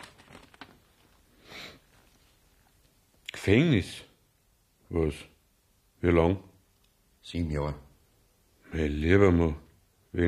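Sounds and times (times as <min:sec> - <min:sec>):
paper document being handled: 0:00.0 - 0:01.2
speech: 0:03.4 - 0:04.1, 0:04.9 - 0:05.3, 0:06.0 - 0:06.5, 0:07.2 - 0:07.8, 0:08.7 - 0:10.2.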